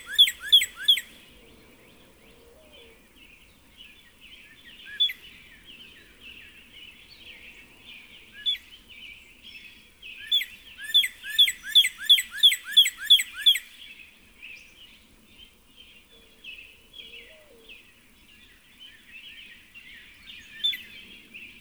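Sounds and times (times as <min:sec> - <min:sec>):
Northern cardinal song of rapidly repeated down-slurred whistled notes: 0:00.0 - 0:01.1, 0:10.2 - 0:13.9.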